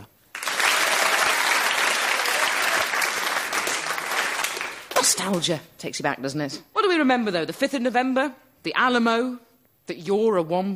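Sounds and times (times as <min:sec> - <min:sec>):
studio audience clapping hands: 0:00.0 - 0:05.4
speech: 0:05.1 - 0:10.7.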